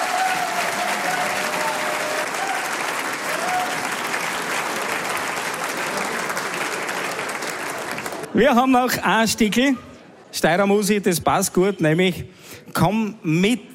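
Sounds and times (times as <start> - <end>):
audience applause: 0.0 - 8.4
speech: 8.4 - 13.7.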